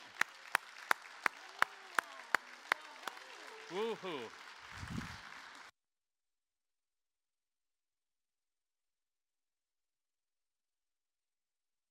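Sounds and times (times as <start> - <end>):
audience applause: 0.0 - 5.7
speech: 3.7 - 5.0.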